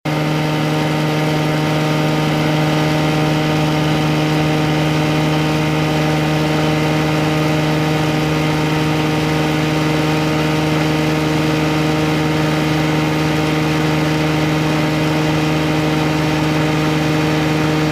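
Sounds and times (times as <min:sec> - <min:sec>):
motor running: 0:00.1 - 0:17.8.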